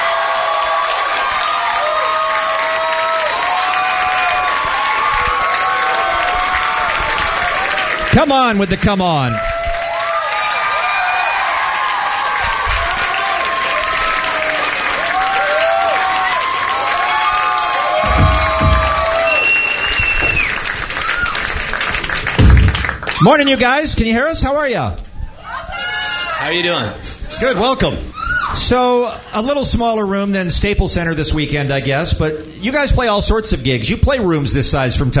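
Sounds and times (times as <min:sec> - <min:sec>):
crowd cheering and applauding: 0:00.0 - 0:23.6
speech: 0:08.2 - 0:09.5, 0:23.2 - 0:25.0, 0:26.4 - 0:35.1.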